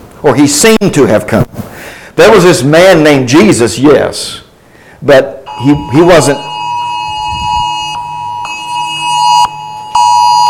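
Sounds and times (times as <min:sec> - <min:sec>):
speech: 0:00.2 - 0:01.6, 0:02.2 - 0:04.4, 0:05.0 - 0:06.5
phone emergency alert alarm tones: 0:05.5 - 0:10.4.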